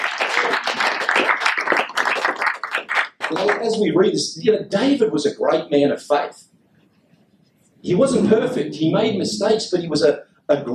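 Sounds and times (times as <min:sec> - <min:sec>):
audience hand clapping: 0:00.0 - 0:03.9
speech: 0:03.3 - 0:06.5, 0:07.8 - 0:10.7.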